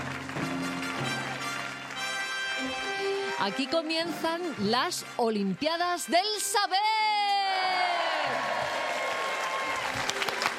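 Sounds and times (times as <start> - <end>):
audience applauding: 0.0 - 3.3, 7.2 - 10.5
speech: 3.4 - 7.0.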